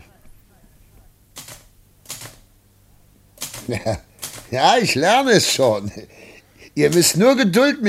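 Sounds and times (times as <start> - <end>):
typewriter keys being struck: 1.4 - 2.4, 3.4 - 4.7
speech: 3.7 - 7.8.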